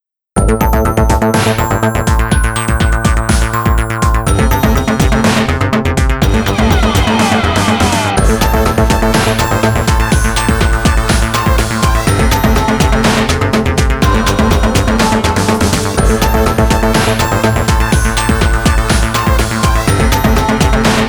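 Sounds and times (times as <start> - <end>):
bells: 0.4 - 21.0.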